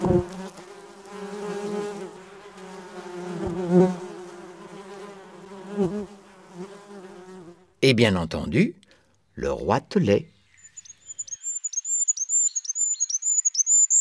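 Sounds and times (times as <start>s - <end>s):
bee buzzing: 0.0s - 7.8s
speech: 0.1s - 0.4s, 7.9s - 8.8s, 9.4s - 10.3s.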